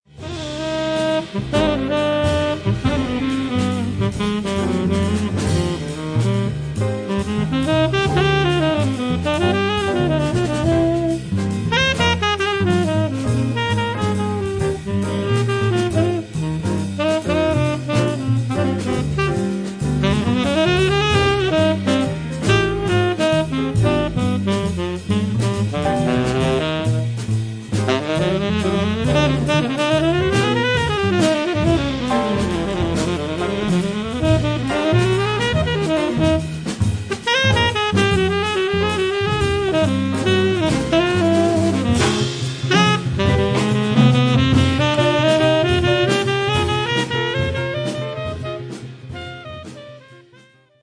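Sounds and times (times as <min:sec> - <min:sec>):
romantic music: 0:00.1 - 0:50.4.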